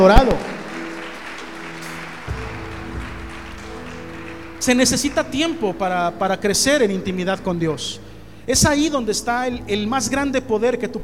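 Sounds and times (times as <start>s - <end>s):
speech: 0.0s - 0.5s, 4.6s - 11.0s
audience applause: 0.0s - 5.7s.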